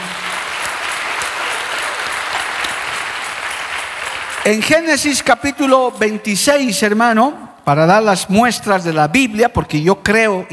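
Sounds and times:
audience applauding: 0.0 - 6.2
speech: 4.4 - 10.5.

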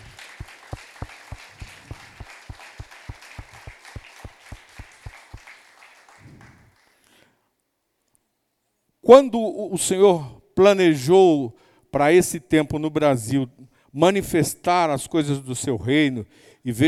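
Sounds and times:
audience clapping in rhythm: 0.0 - 7.1
speech: 9.1 - 16.8.

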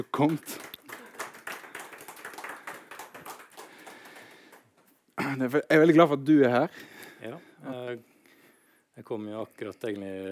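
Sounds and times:
speech: 0.0 - 0.8, 5.3 - 8.1, 9.0 - 10.2
audience applause: 0.0 - 4.8.

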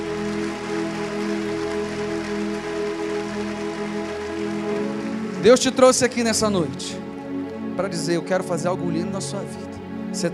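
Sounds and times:
audience applauding: 0.0 - 7.1
sustained low musical tones: 0.0 - 10.3
speech: 5.4 - 7.1, 7.8 - 10.3.

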